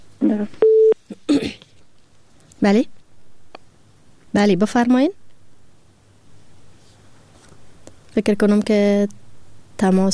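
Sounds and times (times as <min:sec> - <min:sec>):
speech: 0:00.3 - 0:00.7, 0:02.6 - 0:03.0, 0:04.4 - 0:05.2, 0:08.2 - 0:09.2, 0:09.8 - 0:10.1
telephone dialing beep: 0:00.6 - 0:01.0.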